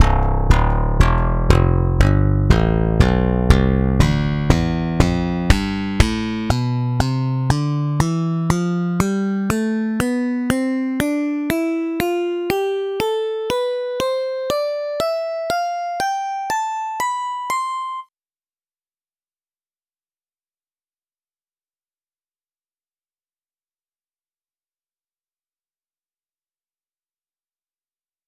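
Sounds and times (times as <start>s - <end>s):
slap bass scale: 0.0s - 18.0s.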